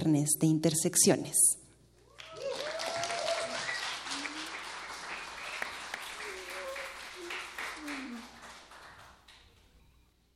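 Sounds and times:
speech: 0.1s - 1.6s
scattered cheering voices: 2.0s - 9.1s
concert crowd applause: 2.1s - 9.6s.

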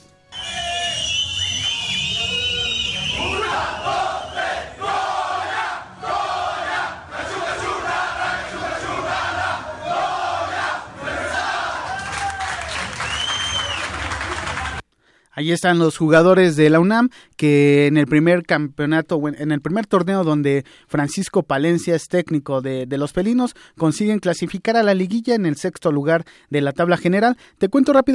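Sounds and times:
cheers and whoops: 0.3s - 4.5s, 11.4s - 14.8s
team shouting and chanting in a locker room: 3.0s - 12.6s
scattered clapping: 11.9s - 14.8s
speech: 15.5s - 28.1s.

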